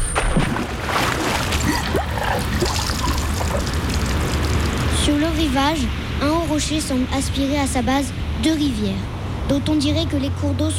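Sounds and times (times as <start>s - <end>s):
ship's anchor dropped into water: 0.0s - 4.7s
water splashing and churning: 0.0s - 5.6s
speech: 5.4s - 10.7s.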